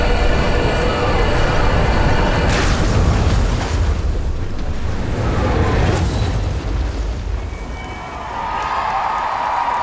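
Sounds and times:
spaceship exploding overhead: 0.2 - 9.7.

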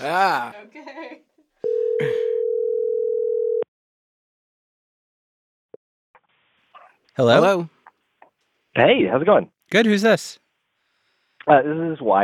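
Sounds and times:
speech: 0.0 - 1.2, 7.2 - 7.8, 8.8 - 10.4, 11.4 - 12.2
telephone call connecting tone: 1.6 - 3.7.

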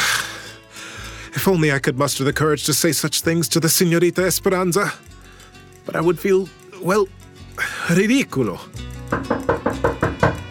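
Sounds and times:
speech: 1.3 - 5.2, 5.8 - 9.4
frightful knocking at a mansion's front door: 9.1 - 10.5.

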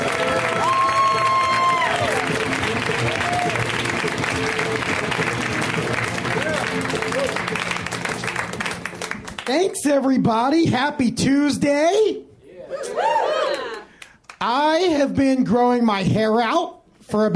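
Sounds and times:
audience whoops at a stand-up show: 0.0 - 2.4, 3.1 - 3.8, 6.4 - 7.4, 12.7 - 13.9
audience clapping for a comedian at a stand-up show: 0.0 - 9.8, 13.4 - 14.6
speech: 9.9 - 12.2, 14.4 - 17.3.

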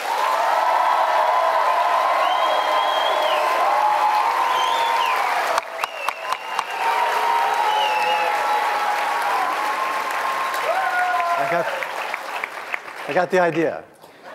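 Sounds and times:
audience applause: 0.0 - 13.8
whoops and whistles: 2.2 - 3.6, 4.4 - 8.5
speech: 13.2 - 13.9.

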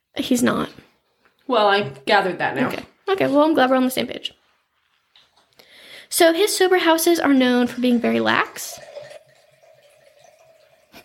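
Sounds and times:
speech: 0.2 - 0.9, 1.5 - 4.4, 6.1 - 8.9
wine pouring into a glass: 7.8 - 11.0.

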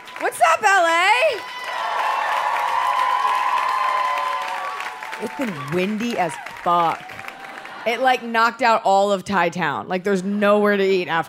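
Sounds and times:
crowd clapping: 0.0 - 8.3
speech: 0.2 - 1.6, 5.2 - 7.2, 7.8 - 11.2.

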